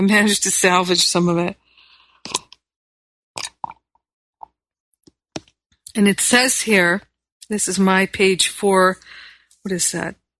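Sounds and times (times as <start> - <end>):
speech: 0.0 - 1.6, 6.0 - 10.2
person sipping mate tea: 2.0 - 2.6, 3.4 - 3.8.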